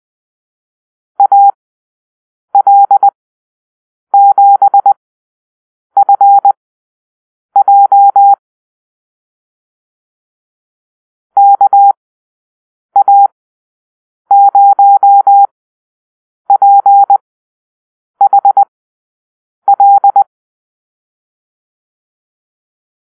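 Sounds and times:
morse code call-sign beeps: 1.2s - 1.6s, 2.6s - 3.2s, 4.2s - 5.0s, 6.0s - 6.5s, 7.6s - 8.4s, 11.4s - 12.0s, 13.0s - 13.3s, 14.3s - 15.5s, 16.5s - 17.2s, 18.2s - 18.7s, 19.7s - 20.3s.

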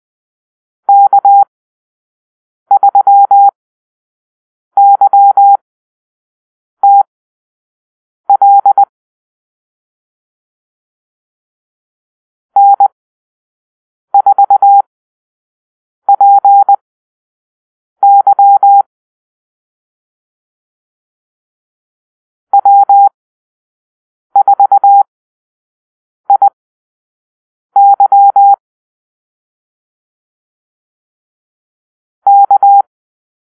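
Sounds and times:
morse code call-sign beeps: 0.9s - 1.5s, 2.7s - 3.6s, 4.8s - 5.6s, 6.8s - 7.1s, 8.3s - 8.9s, 12.6s - 12.9s, 14.2s - 14.9s, 16.1s - 16.8s, 18.0s - 18.9s, 22.6s - 23.1s, 24.4s - 25.1s, 26.3s - 26.6s, 27.8s - 28.6s, 32.3s - 32.9s.

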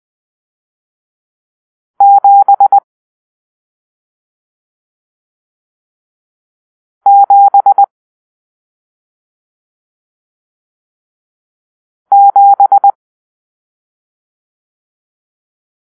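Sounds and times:
morse code for numeral seven: 2.0s - 2.8s, 7.1s - 7.9s, 12.1s - 13.0s.

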